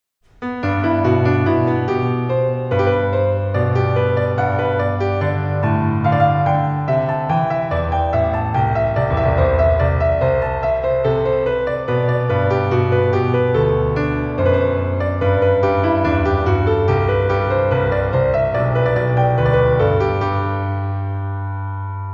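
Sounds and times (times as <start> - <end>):
counterpoint exercise music: 0.4 - 21.2.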